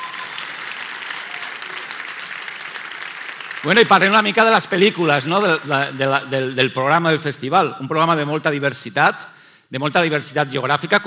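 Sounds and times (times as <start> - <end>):
audience applause at opening gala: 0.0 - 6.6
speech: 3.6 - 11.0.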